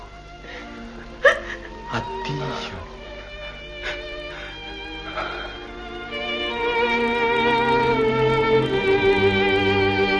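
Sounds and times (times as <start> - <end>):
faint steady hiss: 0.0 - 10.1
woman whimpering sob: 3.8 - 5.8.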